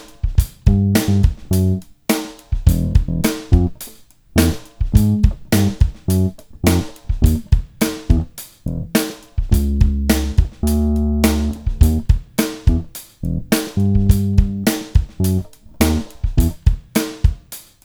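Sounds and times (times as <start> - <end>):
bass sample: 0.6 - 1.8, 2.7 - 3.8, 4.4 - 16.6.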